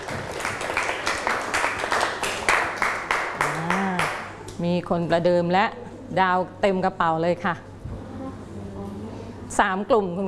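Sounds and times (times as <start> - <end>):
classroom of students clapping in rhythm: 0.0 - 4.3
speech: 4.6 - 7.7, 9.6 - 10.2.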